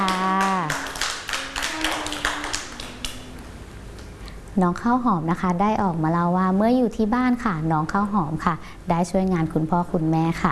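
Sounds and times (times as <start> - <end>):
children clapping: 0.0 - 3.5
speech: 4.6 - 10.5.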